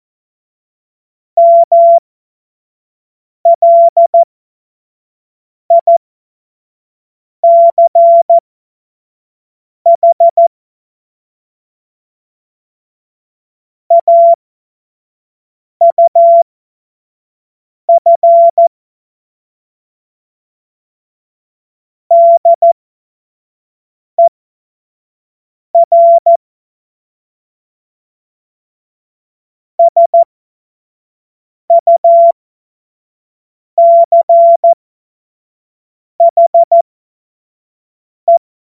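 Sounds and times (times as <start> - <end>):
CW Morse code beeps: 1.4 - 2.0, 3.5 - 4.3, 5.7 - 6.0, 7.4 - 8.4, 9.9 - 10.4, 13.9 - 14.4, 15.8 - 16.4, 17.9 - 18.7, 22.1 - 22.8, 25.8 - 26.4, 29.8 - 30.3, 31.7 - 32.4, 33.8 - 34.8, 36.2 - 36.8.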